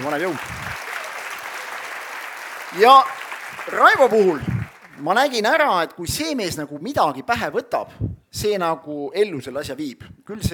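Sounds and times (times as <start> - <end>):
speech: 0.0 - 0.8, 2.7 - 10.5
applause: 0.0 - 5.6.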